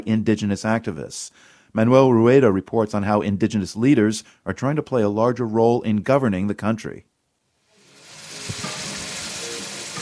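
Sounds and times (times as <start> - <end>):
speech: 0.0 - 7.1
tomatoes and chopped onions frying in a giant pot in Lima: 7.6 - 9.9.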